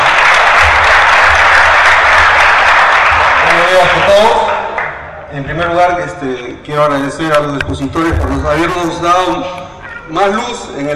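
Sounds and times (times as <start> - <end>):
audience applause: 0.0 - 5.0
speech: 3.8 - 4.4, 5.3 - 10.9.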